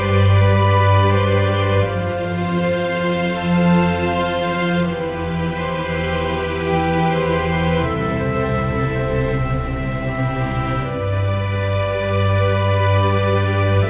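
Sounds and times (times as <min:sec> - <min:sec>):
nocturnal orchestral ambient music: 0:00.0 - 0:13.8.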